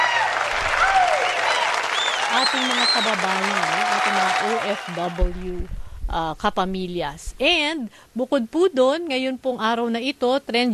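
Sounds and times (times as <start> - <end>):
audience applause: 0.0 - 5.3
speech: 2.4 - 10.7.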